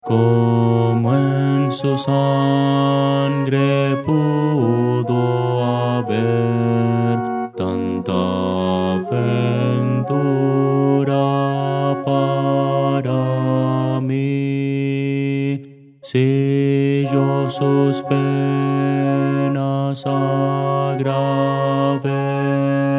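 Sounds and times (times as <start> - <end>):
contralto voice: 0.0 - 22.9.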